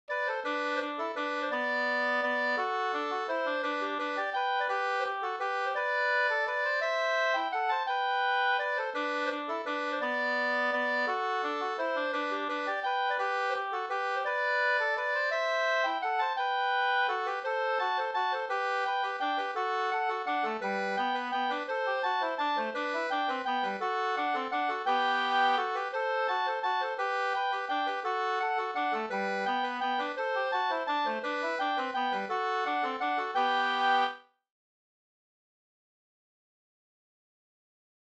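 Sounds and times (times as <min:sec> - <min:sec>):
waltz music: 0:00.1 - 0:34.2.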